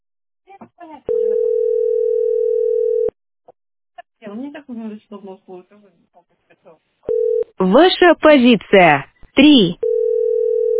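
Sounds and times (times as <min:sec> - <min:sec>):
telephone dial tone: 0:01.1 - 0:03.1, 0:07.1 - 0:07.5, 0:09.8 - 0:10.7
speech: 0:04.6 - 0:09.8.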